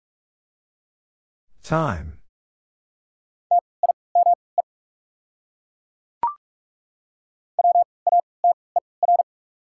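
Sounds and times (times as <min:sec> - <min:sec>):
speech: 0:01.7 - 0:02.2
Morse code beeps spelling a word: 0:04.2 - 0:04.4, 0:07.6 - 0:09.3.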